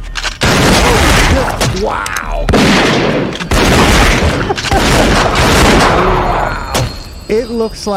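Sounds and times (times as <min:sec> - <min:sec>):
shotgun blasts in a film: 0:00.4 - 0:01.8, 0:02.5 - 0:06.2
speech: 0:07.3 - 0:07.9.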